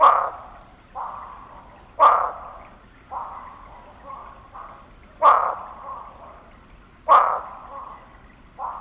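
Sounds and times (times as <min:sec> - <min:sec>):
barking frog calls in Texas: 0:00.0 - 0:08.7.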